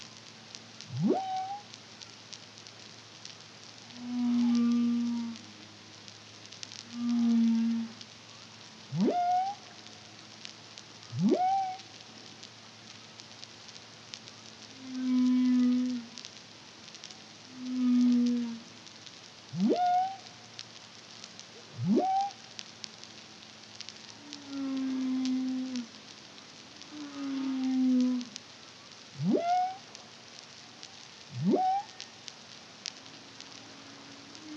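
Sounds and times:
crackle: 0.0s - 34.5s
humpback whale song: 0.9s - 1.7s, 3.9s - 5.4s, 6.8s - 8.0s, 8.9s - 9.7s, 11.1s - 11.9s, 14.8s - 16.2s, 17.5s - 18.7s, 19.5s - 20.3s, 21.8s - 22.4s, 24.2s - 25.9s, 26.8s - 28.4s, 29.2s - 29.9s, 31.3s - 32.1s.

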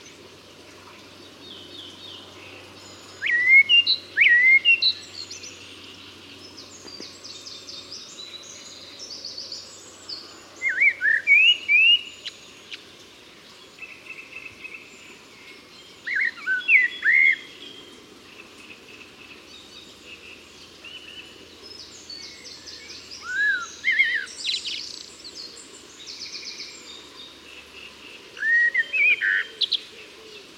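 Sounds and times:
Common blackbird song: 0.0s - 30.5s.

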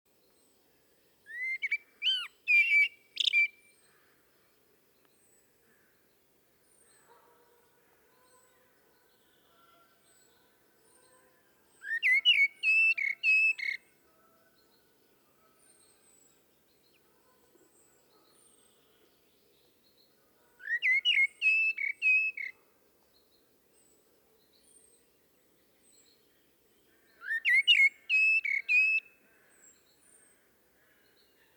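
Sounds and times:
faint bird sounds: 0.1s - 31.5s
common blackbird fluting song: 1.3s - 3.6s, 11.8s - 13.9s, 20.6s - 22.6s, 27.2s - 29.2s.

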